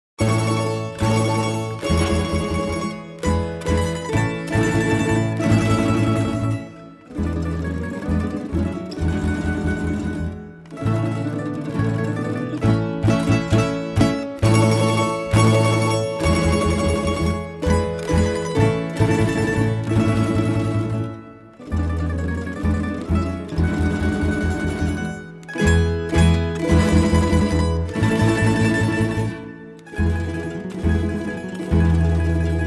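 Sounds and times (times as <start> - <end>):
tamburica orchestra: 0.2 - 32.6.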